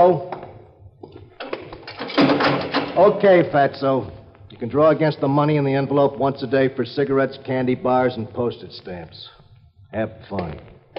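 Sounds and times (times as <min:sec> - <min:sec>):
speech: 0:00.0 - 0:00.3, 0:03.0 - 0:10.7
heavy cell door closing: 0:01.4 - 0:03.4.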